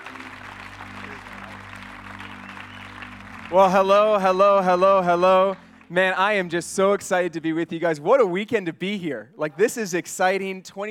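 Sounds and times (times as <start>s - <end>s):
audience applause welcoming a youth ministry presenter: 0.0s - 6.2s
speech: 3.5s - 10.8s.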